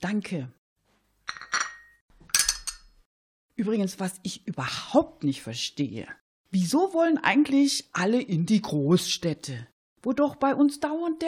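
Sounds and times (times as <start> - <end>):
speech: 0.0 - 0.6, 3.6 - 11.2
coffee cups clinking while serving coffee: 1.3 - 2.9.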